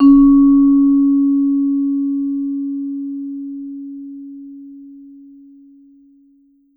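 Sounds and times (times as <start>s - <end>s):
vibraphone note C sharp three: 0.0s - 3.0s.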